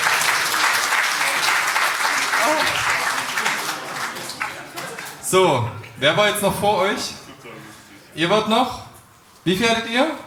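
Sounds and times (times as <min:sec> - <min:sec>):
crowd applauding at a film-night prize ceremony: 0:00.0 - 0:05.3
speech: 0:05.3 - 0:07.2, 0:08.2 - 0:08.8, 0:09.4 - 0:10.2.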